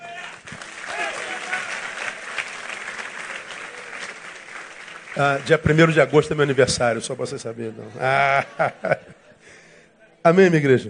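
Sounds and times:
church audience applauding: 0.0s - 7.1s
speech: 5.2s - 9.1s, 10.2s - 10.8s
laughter: 7.4s - 9.4s.

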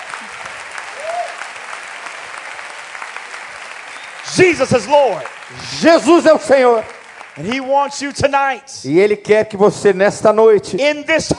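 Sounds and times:
audience applause: 0.0s - 8.2s
speech: 4.4s - 11.3s.

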